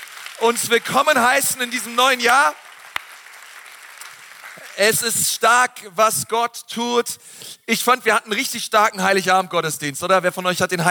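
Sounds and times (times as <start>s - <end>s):
audience applause: 0.0s - 5.1s
speech: 0.4s - 2.6s, 4.8s - 10.9s.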